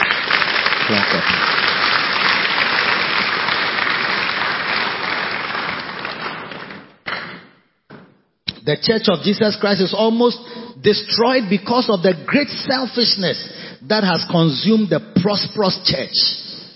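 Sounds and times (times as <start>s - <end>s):
audience applause: 0.0s - 7.0s
speech: 0.9s - 1.5s, 8.7s - 16.4s.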